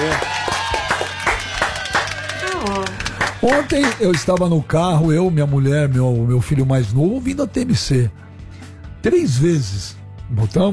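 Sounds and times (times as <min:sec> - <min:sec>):
hands clapping: 0:00.0 - 0:05.1
speech: 0:03.4 - 0:08.2, 0:09.0 - 0:10.7.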